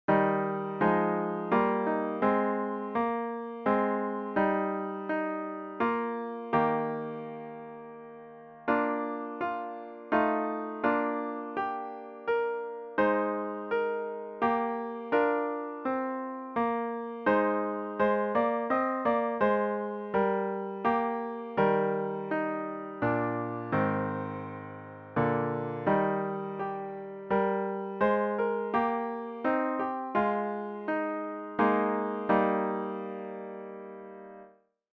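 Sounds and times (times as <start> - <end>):
hymn played on piano: 0.0 - 34.5.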